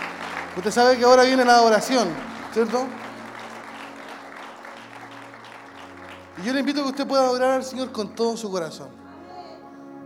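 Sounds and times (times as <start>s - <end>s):
audience applause: 0.0s - 8.0s
speech: 0.6s - 3.0s, 6.4s - 9.0s.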